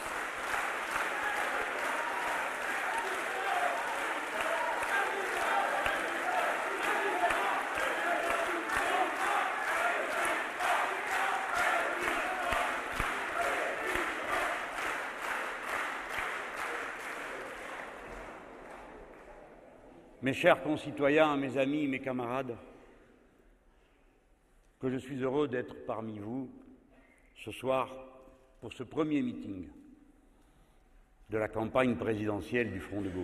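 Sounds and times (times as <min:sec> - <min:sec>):
steady rhythmic applause from rally crowd: 0:00.0 - 0:19.8
large rally crowd chanting in unison: 0:01.0 - 0:15.6
speech: 0:20.3 - 0:22.7, 0:24.8 - 0:26.6, 0:27.4 - 0:29.8, 0:31.3 - 0:33.2.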